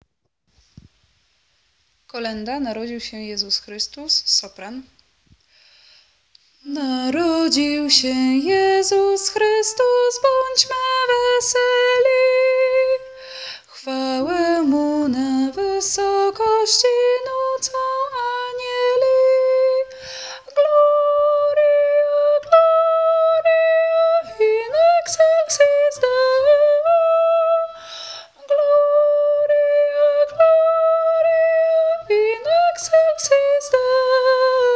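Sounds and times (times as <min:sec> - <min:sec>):
soprano singing a Christmas carol: 0:06.6 - 0:34.7.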